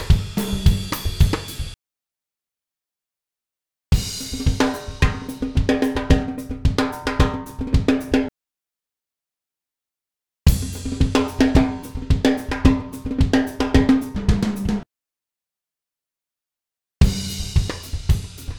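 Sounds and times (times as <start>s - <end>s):
Latin drumbeat loop: 0.0s - 1.8s, 4.0s - 8.3s, 10.5s - 14.8s, 17.0s - 18.5s.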